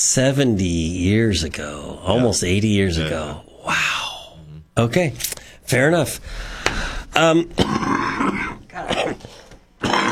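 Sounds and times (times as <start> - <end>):
speech: 0.0 - 4.0, 4.8 - 9.3
person coughing: 7.6 - 10.0.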